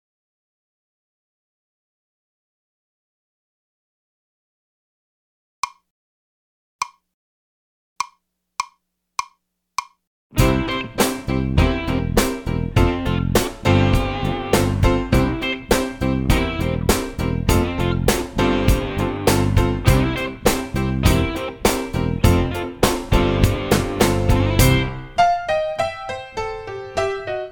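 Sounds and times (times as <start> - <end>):
three-four minor blues music: 10.3 - 27.5.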